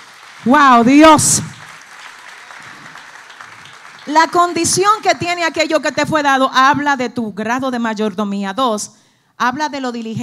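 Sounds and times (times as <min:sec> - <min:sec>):
audience applause: 0:00.0 - 0:06.1
speech: 0:00.4 - 0:01.6, 0:04.1 - 0:10.2.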